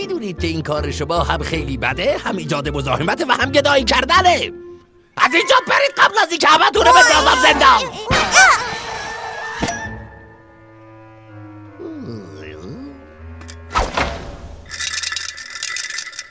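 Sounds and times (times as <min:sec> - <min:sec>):
speech: 0:00.0 - 0:04.6, 0:05.2 - 0:08.8
coins jingling: 0:14.7 - 0:16.2.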